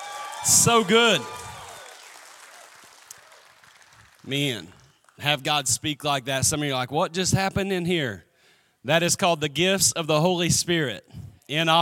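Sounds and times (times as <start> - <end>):
audience clapping: 0.0 - 5.4
speech: 0.4 - 1.4, 4.2 - 11.8.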